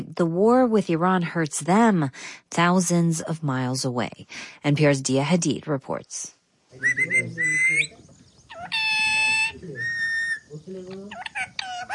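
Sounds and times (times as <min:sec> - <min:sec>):
speech: 0:00.2 - 0:08.0
pet parrot calling from a balcony perch, demanding rice: 0:06.8 - 0:11.9.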